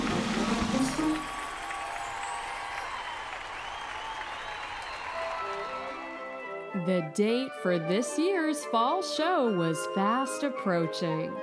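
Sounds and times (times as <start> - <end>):
crowd clapping and cheering: 0.0 - 6.8
whoops: 1.0 - 6.2
speech: 6.8 - 11.4.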